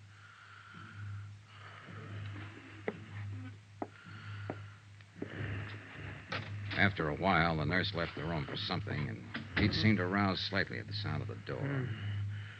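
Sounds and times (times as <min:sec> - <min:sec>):
hoarse slow breathing of a wounded man: 0:00.0 - 0:02.9, 0:03.9 - 0:06.7, 0:11.9 - 0:12.5
speech: 0:06.8 - 0:12.1.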